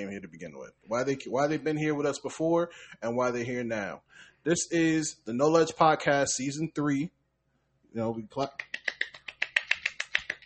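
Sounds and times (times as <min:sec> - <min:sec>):
speech: 0:00.0 - 0:07.2, 0:07.9 - 0:09.0
finger snapping: 0:08.6 - 0:10.4.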